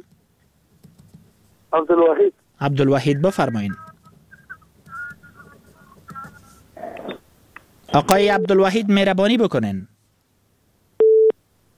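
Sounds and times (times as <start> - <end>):
speech: 1.7 - 3.8, 7.9 - 9.9
telephone busy tone after a radio show call is cut off: 11.0 - 11.4.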